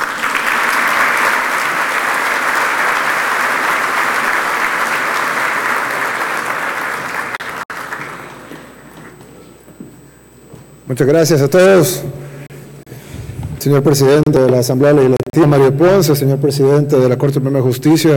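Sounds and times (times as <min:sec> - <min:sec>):
loud sustained audience applause: 0:00.0 - 0:08.7
speech: 0:10.9 - 0:12.2, 0:13.6 - 0:18.1.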